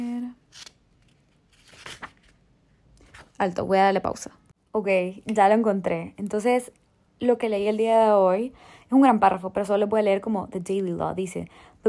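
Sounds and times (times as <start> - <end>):
book page being turned: 0.4 - 3.5
speech: 0.5 - 0.7, 3.4 - 11.8.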